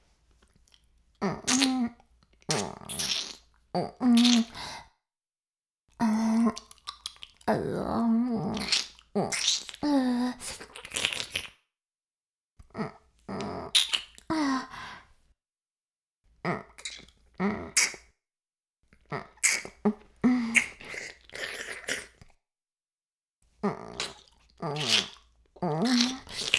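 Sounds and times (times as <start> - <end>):
oral sex sounds: 1.2 - 4.8, 5.9 - 11.6, 12.6 - 15.0, 16.4 - 18.1, 19.0 - 22.3, 23.6 - 26.5.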